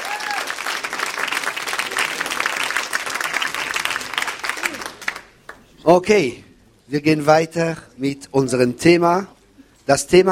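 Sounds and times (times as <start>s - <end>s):
audience applause: 0.0s - 5.6s
speech: 5.8s - 10.2s.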